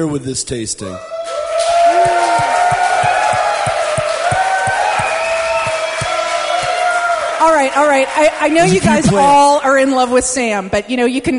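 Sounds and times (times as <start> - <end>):
speech: 0.0 - 2.9, 7.5 - 11.3
audience clapping and cheering: 1.1 - 9.7.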